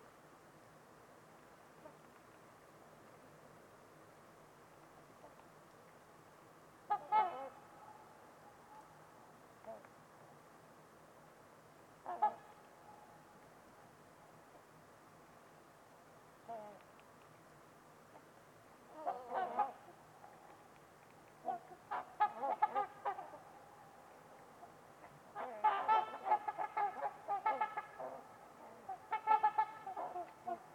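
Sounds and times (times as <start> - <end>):
faint steady background noise: 0.0 - 30.7
trumpeter swans honking: 6.9 - 8.0, 18.9 - 20.4, 21.4 - 23.6, 24.6 - 30.7.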